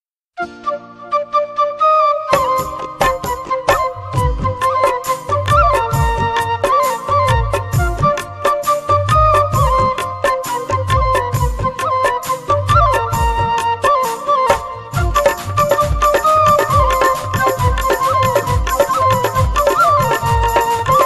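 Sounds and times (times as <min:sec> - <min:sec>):
flute ringtone: 0:00.4 - 0:21.0.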